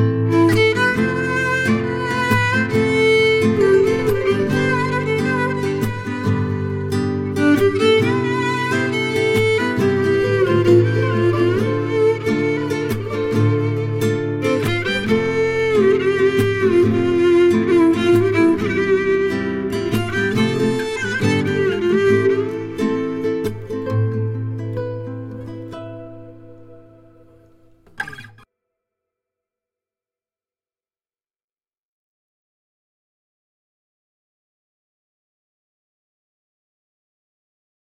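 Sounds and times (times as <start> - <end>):
violin: 0.0 - 28.2
guitar: 0.0 - 28.5.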